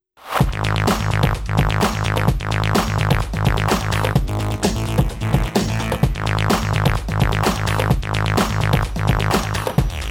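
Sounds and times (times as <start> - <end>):
ten second bomb timer countdown: 0.4 - 10.0.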